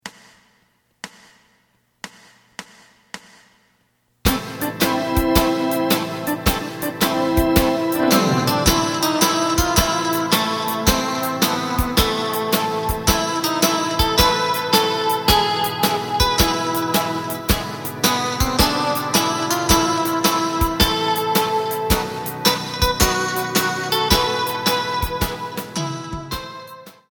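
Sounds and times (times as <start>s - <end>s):
bass: 4.3s - 26.8s.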